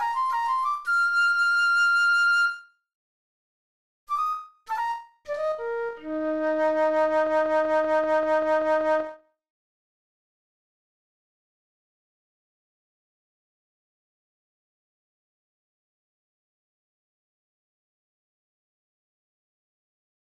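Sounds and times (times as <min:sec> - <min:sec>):
junior flute: 0:00.0 - 0:02.8, 0:04.1 - 0:09.4.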